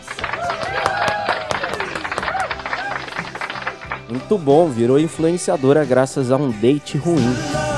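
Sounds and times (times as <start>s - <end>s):
applause: 0.0s - 4.4s
speech: 4.1s - 7.6s.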